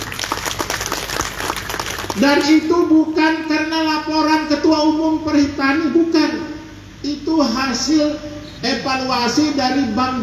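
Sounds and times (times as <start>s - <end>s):
audience applause: 0.0s - 2.7s
speech: 2.2s - 10.2s.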